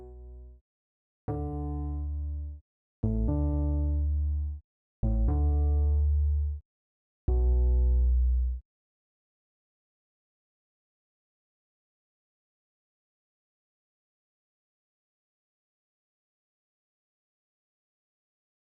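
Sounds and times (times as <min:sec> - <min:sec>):
bass: 0:00.0 - 0:00.6, 0:01.3 - 0:06.6, 0:07.3 - 0:08.6.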